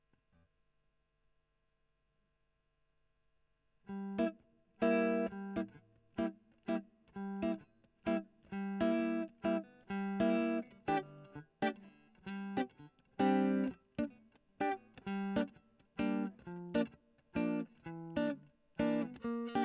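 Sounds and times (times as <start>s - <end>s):
electric guitar recorded with a Gefell microphone: 3.9s - 19.6s.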